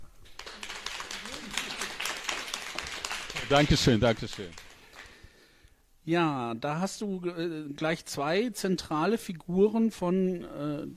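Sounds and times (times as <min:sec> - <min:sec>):
audience applause: 0:00.3 - 0:05.2
speech: 0:03.5 - 0:04.6, 0:06.1 - 0:10.9.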